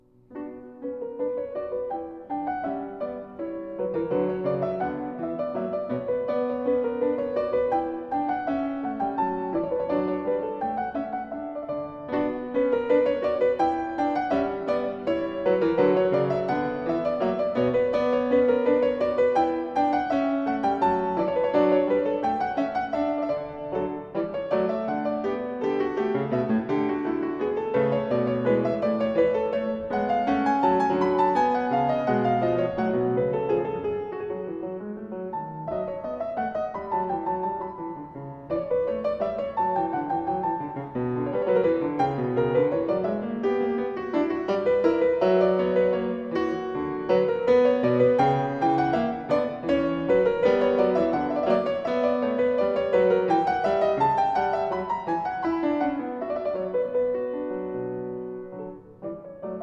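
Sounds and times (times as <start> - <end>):
French suite anglaise dance piece: 0.0 - 59.6.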